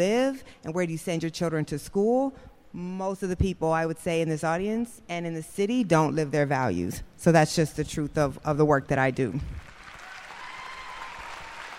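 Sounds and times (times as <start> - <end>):
speech: 0.0 - 9.6
audience applause: 9.6 - 11.7.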